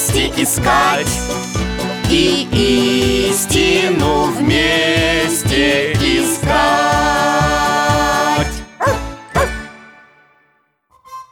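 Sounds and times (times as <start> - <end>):
music: 0.0 - 11.3
speech: 0.2 - 7.4
pet dog barking: 8.8 - 9.6.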